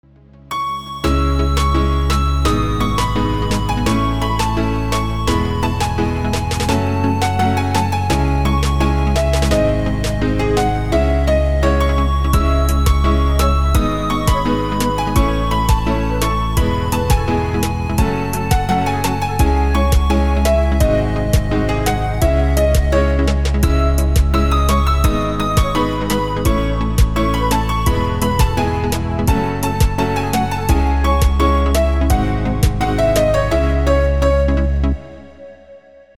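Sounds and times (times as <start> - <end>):
flute: 0.5 - 36.1.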